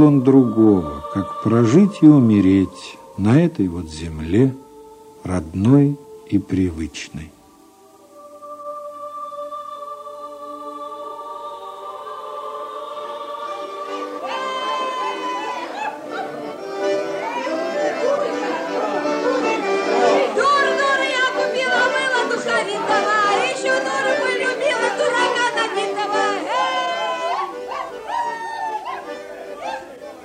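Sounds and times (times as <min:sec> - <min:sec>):
speech: 0:00.0 - 0:04.6, 0:05.2 - 0:07.4
dense crowd of villagers chattering: 0:00.0 - 0:08.1, 0:12.6 - 0:30.2
laughter: 0:14.2 - 0:20.3, 0:25.8 - 0:30.2
dog yipping: 0:15.0 - 0:16.4, 0:27.2 - 0:30.0.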